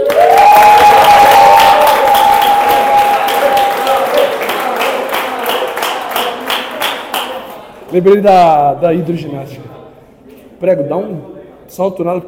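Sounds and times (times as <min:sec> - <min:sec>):
applause from a group: 0:00.0 - 0:08.0
speech: 0:07.9 - 0:09.8, 0:10.6 - 0:12.2.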